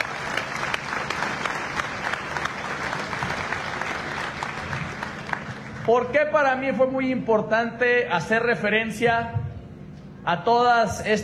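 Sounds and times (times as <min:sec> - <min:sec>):
audience applause: 0:00.0 - 0:06.0
speech: 0:05.9 - 0:09.4, 0:10.2 - 0:11.2.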